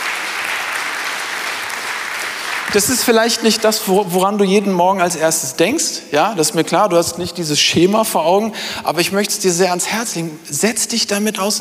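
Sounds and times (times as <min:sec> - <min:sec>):
church audience applause: 0:00.0 - 0:03.4
speech: 0:02.7 - 0:11.5.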